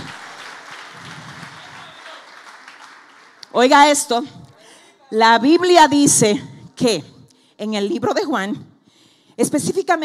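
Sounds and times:
audience applause: 0:00.0 - 0:03.6
speech: 0:03.6 - 0:04.4, 0:05.1 - 0:08.7, 0:09.4 - 0:10.0.

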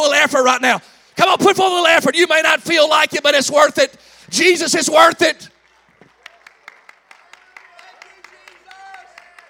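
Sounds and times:
speech: 0:00.0 - 0:05.6
audience clapping hands in a rhythmic beat: 0:05.5 - 0:09.4.

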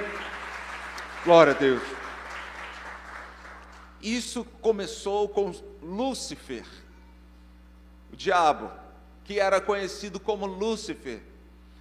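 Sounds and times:
audience applause: 0:00.0 - 0:03.9
speech: 0:01.2 - 0:02.0, 0:04.0 - 0:06.8, 0:08.1 - 0:11.3.

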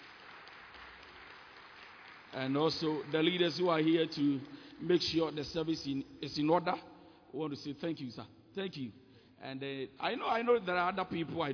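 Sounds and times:
crowd clapping: 0:00.0 - 0:05.7
speech: 0:02.3 - 0:11.5.

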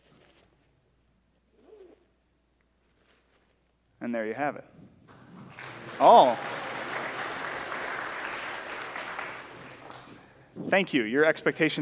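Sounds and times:
speech: 0:04.1 - 0:04.8, 0:06.0 - 0:06.5, 0:10.6 - 0:11.7
audience applause: 0:05.1 - 0:10.4.

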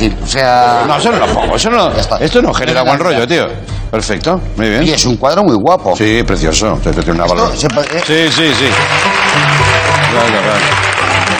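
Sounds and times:
speech: 0:00.0 - 0:11.0
audience applause: 0:07.5 - 0:11.3.

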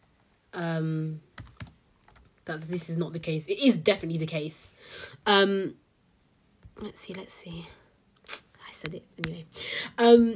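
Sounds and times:
speech: 0:00.6 - 0:01.3, 0:02.5 - 0:05.8, 0:06.8 - 0:07.8, 0:08.8 - 0:10.3
computer keyboard key clicks: 0:01.4 - 0:02.8.

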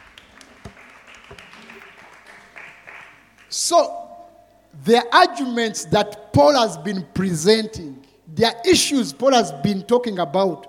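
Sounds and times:
audience clapping: 0:00.0 - 0:03.6
speech: 0:03.5 - 0:04.1, 0:04.8 - 0:10.6.

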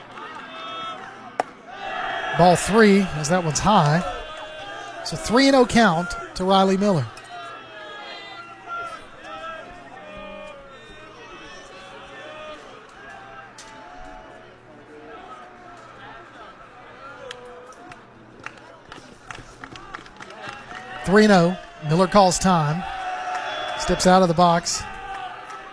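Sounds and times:
baseball players shouting and chattering in the visitors' dugout: 0:00.0 - 0:25.7
speech: 0:02.4 - 0:04.1, 0:05.1 - 0:07.2, 0:21.1 - 0:22.9, 0:23.8 - 0:24.9.

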